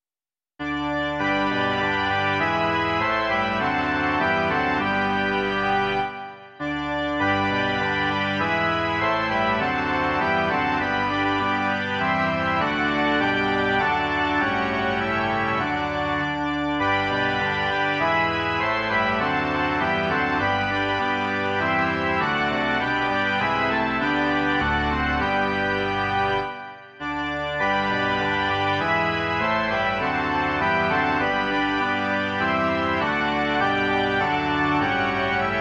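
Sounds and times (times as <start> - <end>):
organ: 0.6 - 35.5.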